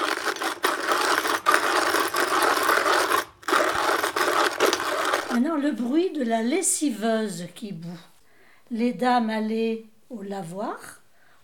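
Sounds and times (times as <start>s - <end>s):
manual coffee grinder grinding: 0.0s - 5.7s
speech: 5.6s - 8.1s, 8.7s - 11.0s.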